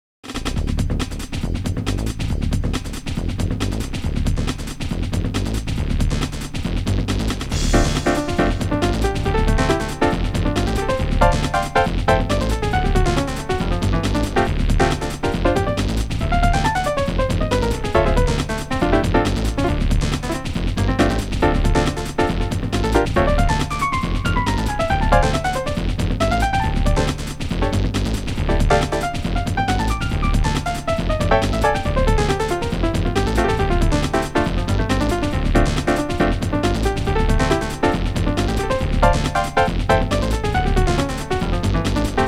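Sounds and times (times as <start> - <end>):
acid jazz: 0.2 - 42.2.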